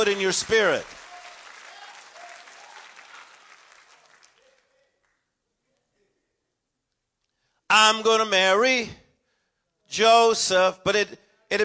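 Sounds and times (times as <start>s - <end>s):
speech: 0.0s - 1.0s, 7.8s - 9.0s, 9.9s - 11.6s
people clapping hands: 0.0s - 5.4s.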